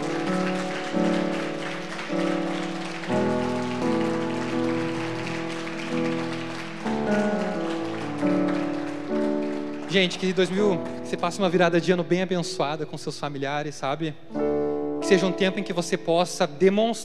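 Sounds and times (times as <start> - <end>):
audience applause: 0.0 - 11.7
speech: 10.0 - 14.5, 15.1 - 17.0.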